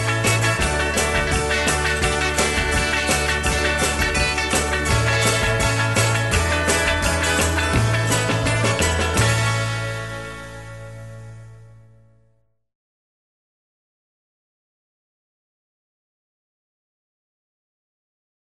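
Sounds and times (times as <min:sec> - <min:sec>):
music bed: 0:00.0 - 0:12.2.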